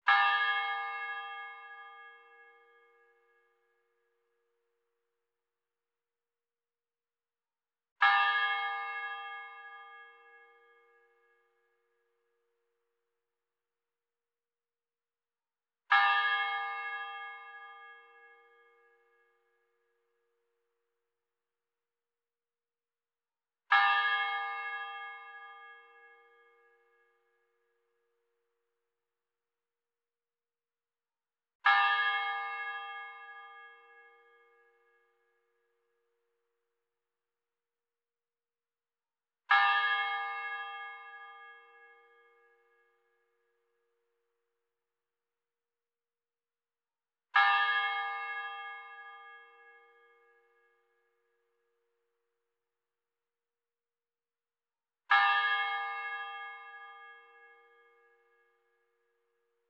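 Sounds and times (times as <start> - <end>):
church bell heard in Bendiksbukta: 0.0 - 5.5, 7.9 - 13.4, 15.7 - 21.4, 23.6 - 29.4, 31.5 - 37.3, 39.4 - 45.2, 47.2 - 52.8, 54.9 - 59.6.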